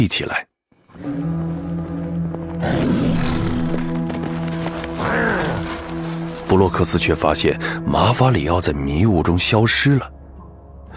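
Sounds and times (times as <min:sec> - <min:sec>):
speech: 0:00.0 - 0:01.4, 0:06.5 - 0:10.2
beast roaring and howling: 0:02.6 - 0:06.5.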